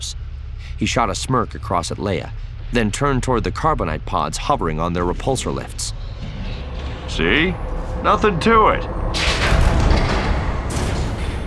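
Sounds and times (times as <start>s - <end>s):
speech: 0.8s - 6.0s, 7.2s - 9.0s
metal hatches slamming shut: 9.2s - 11.4s.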